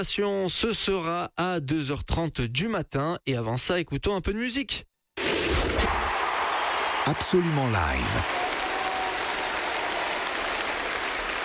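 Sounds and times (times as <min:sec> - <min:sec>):
speech: 0:00.0 - 0:04.9, 0:07.1 - 0:08.4
concert audience applause: 0:05.8 - 0:11.4.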